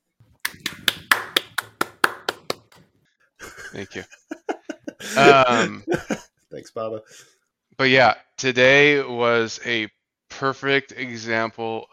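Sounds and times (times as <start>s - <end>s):
sharp hand claps: 0.4s - 2.9s
laughter: 3.4s - 6.3s
speech: 3.7s - 4.2s, 5.1s - 11.9s.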